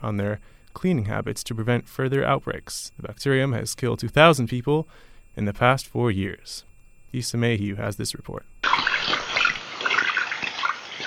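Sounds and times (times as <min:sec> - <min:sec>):
speech: 0:00.0 - 0:08.8
running tap water as hands are washed in a hospital: 0:08.6 - 0:11.0.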